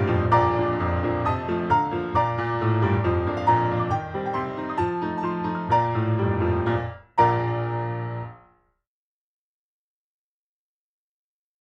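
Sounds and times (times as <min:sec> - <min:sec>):
piano: 0:00.0 - 0:08.7.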